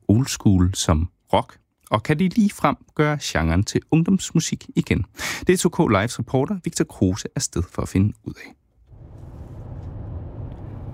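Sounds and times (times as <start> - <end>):
speech: 0.2 - 8.6
car engine and road noise inside a car driving from DR-byen toward Kirke Hyllinge: 8.8 - 10.9.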